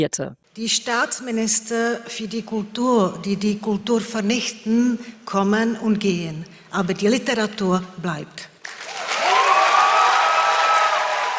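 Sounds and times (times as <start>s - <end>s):
speech: 0.0s - 8.5s
audience cheering and applause after speech: 8.6s - 11.3s.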